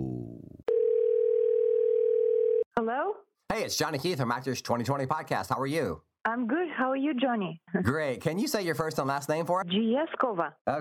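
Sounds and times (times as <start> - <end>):
telephone dial tone as a call is placed: 0.7 - 2.7
speech: 2.8 - 10.7.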